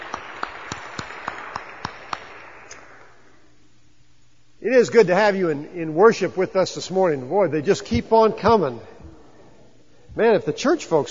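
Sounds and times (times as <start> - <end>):
audience applause: 0.0 - 3.0
speech: 4.6 - 8.9, 10.2 - 11.0.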